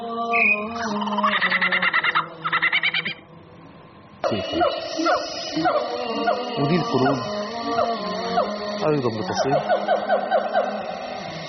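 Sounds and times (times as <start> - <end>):
small birds chirping: 0.0 - 3.3, 4.2 - 11.4
speech: 4.3 - 10.3.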